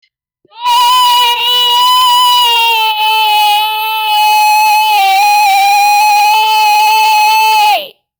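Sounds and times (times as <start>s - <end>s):
man screaming: 0.6s - 7.9s.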